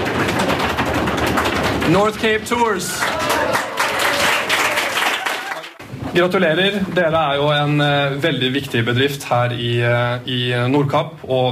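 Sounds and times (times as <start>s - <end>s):
audience applause for a tour company receiving a service award: 0.0s - 5.8s
speech: 1.9s - 3.6s, 6.2s - 11.5s.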